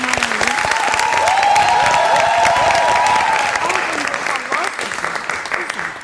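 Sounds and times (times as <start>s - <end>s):
live audience applause: 0.0s - 6.0s
voices: 0.0s - 6.0s
whoops: 0.1s - 4.2s.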